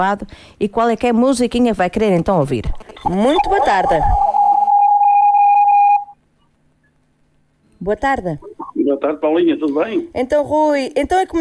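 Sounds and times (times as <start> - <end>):
speech: 0.0 - 4.3, 7.8 - 11.3
telephone ringing: 3.0 - 6.2.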